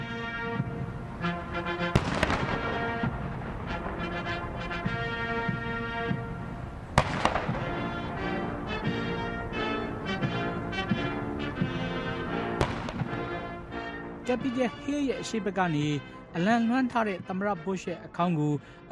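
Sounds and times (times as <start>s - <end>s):
band music: 0.0s - 18.5s
cannon gun salute at George H. W. Bush's state funeral: 1.8s - 6.2s, 7.0s - 8.2s, 12.6s - 13.5s
speech: 14.3s - 18.9s.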